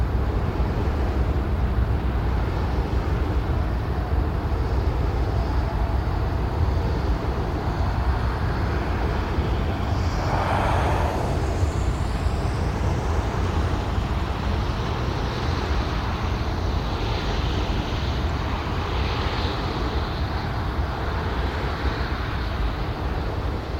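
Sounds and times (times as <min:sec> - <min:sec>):
wind turbine rumble: 0:00.0 - 0:23.7
highway traffic: 0:06.3 - 0:16.9
soft rising whoosh: 0:09.6 - 0:14.2.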